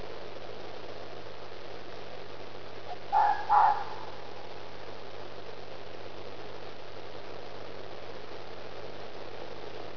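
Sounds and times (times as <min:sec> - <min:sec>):
low hum: 0:00.0 - 0:09.9
fox barking cries: 0:02.9 - 0:04.5.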